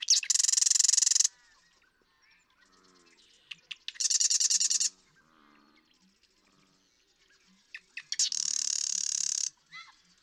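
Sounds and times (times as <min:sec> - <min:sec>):
Marsh Wren singing rattles: 0:00.0 - 0:01.3, 0:03.7 - 0:04.9, 0:07.7 - 0:09.5.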